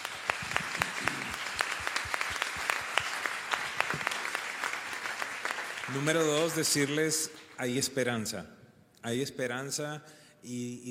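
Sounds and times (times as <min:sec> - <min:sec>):
audience applause: 0:00.0 - 0:07.6
speech: 0:05.9 - 0:10.9.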